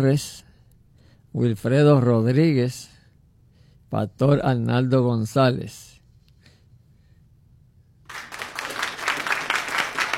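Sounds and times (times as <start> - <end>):
speech: 0.0 - 0.4, 1.3 - 3.0, 3.9 - 5.9
applause: 8.1 - 10.1.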